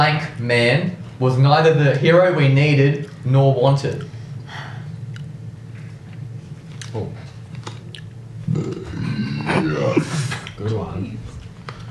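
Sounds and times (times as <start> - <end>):
speech: 0.0 - 4.2, 6.9 - 7.2
burp: 8.5 - 10.1.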